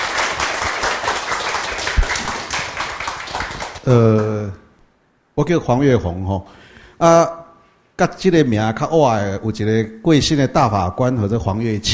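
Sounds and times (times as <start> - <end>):
room full of people clapping: 0.0 - 3.8
speech: 3.9 - 4.6, 5.4 - 7.4, 8.0 - 11.9.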